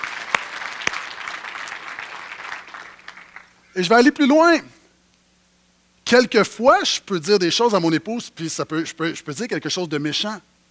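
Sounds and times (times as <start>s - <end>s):
audience applause: 0.0s - 3.6s
speech: 3.8s - 4.8s, 6.1s - 10.5s.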